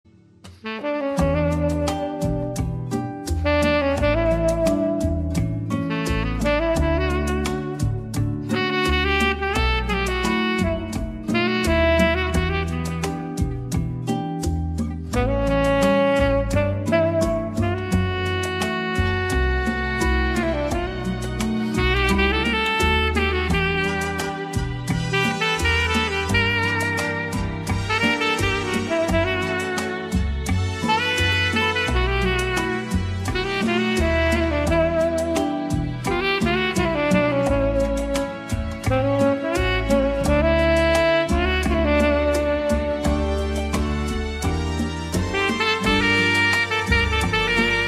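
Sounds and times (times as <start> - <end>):
saxophone: 0.5 - 47.8.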